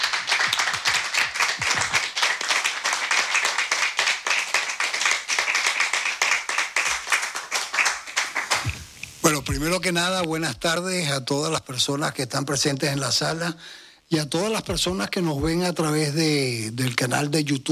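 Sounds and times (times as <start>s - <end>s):
audience applauding: 0.0s - 8.9s
speech: 9.3s - 17.7s.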